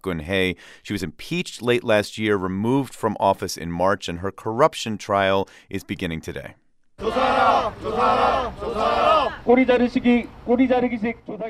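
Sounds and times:
speech: 0:00.0 - 0:11.4
protesters chanting outside a Seoul courtroom: 0:07.0 - 0:09.5.

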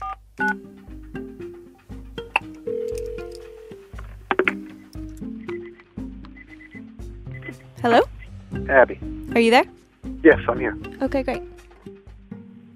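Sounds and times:
speech: 0:00.4 - 0:00.8, 0:07.8 - 0:08.1, 0:08.7 - 0:11.5
telephone keypad dialing tones: 0:02.6 - 0:03.9, 0:05.4 - 0:06.8.

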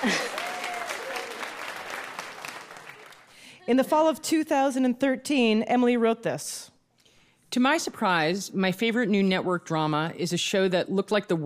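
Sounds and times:
speech: 0:00.0 - 0:00.3, 0:03.7 - 0:06.7, 0:07.5 - 0:11.4
whoop: 0:00.0 - 0:01.5
audience applause: 0:00.0 - 0:03.4.

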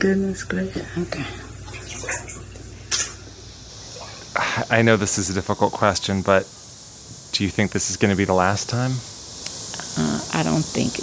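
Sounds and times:
speech: 0:00.0 - 0:01.5, 0:04.6 - 0:06.6, 0:07.4 - 0:09.1, 0:10.0 - 0:11.0
floodwater sloshing in a flooded basement: 0:00.8 - 0:04.9
splashes of a resident in rain boots wading through murky water: 0:01.5 - 0:05.4.

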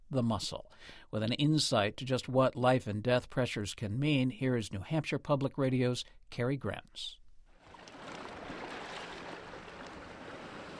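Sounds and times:
speech: 0:00.1 - 0:07.2
small waves lapping the coastline at Odeon State Park in Rye, New Hampshire: 0:07.6 - 0:10.7.

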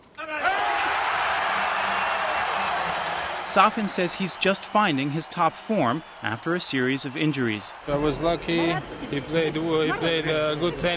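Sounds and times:
jubilant crowd cheering in Moscow's Olympic Stadium: 0:00.0 - 0:10.9
speech: 0:03.5 - 0:10.9.

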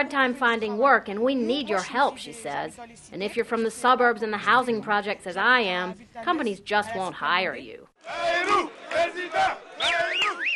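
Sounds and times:
speech: 0:00.0 - 0:10.5
rally crowd chanting for presidential candidate Bayrou in a French suburb: 0:08.0 - 0:10.5.

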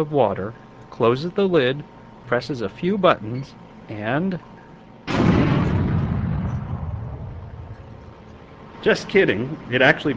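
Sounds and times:
speech: 0:00.0 - 0:04.5, 0:08.8 - 0:10.1
explosion sound effect: 0:05.1 - 0:07.9.

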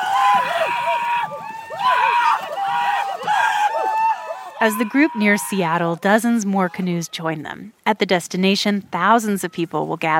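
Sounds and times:
supporters cheering as canoe comes ashore: 0:00.0 - 0:07.2
speech: 0:04.6 - 0:10.1.

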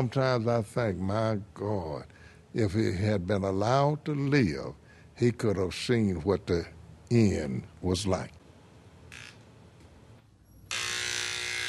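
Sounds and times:
speech: 0:00.0 - 0:08.4
loud mechanical buzz of barber shaving a customer: 0:10.7 - 0:11.6.

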